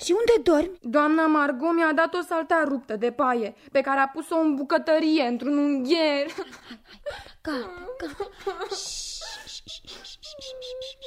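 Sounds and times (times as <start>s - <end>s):
speech: 0.0s - 11.0s
girl crying and whimpering: 6.7s - 11.0s.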